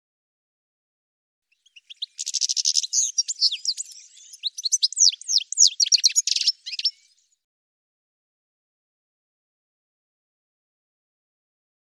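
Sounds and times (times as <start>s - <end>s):
bird singing: 1.5s - 7.4s.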